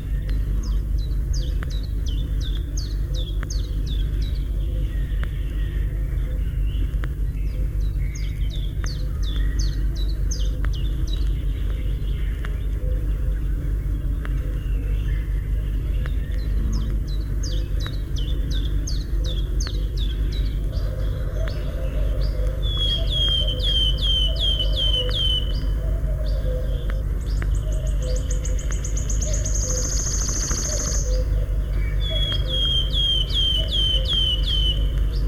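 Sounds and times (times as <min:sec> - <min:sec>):
Wood Warbler trilling song: 0:00.0 - 0:35.2
low steady rumble: 0:00.0 - 0:35.2
other birds: 0:00.0 - 0:35.2.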